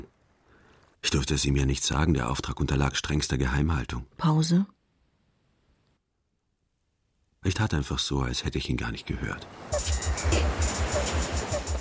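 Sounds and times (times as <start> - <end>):
speech: 1.1 - 4.8, 7.4 - 10.5
sea waves, surf: 9.3 - 11.8.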